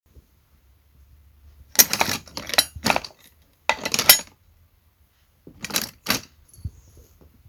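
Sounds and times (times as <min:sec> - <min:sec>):
metal armour clanking: 0:01.8 - 0:04.3, 0:05.6 - 0:06.3.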